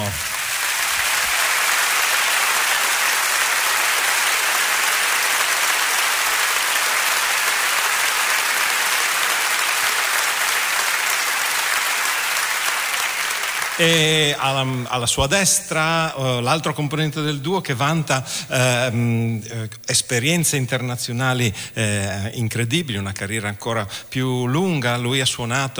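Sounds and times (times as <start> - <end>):
audience applause: 0.0 - 15.2
speech: 13.8 - 25.7.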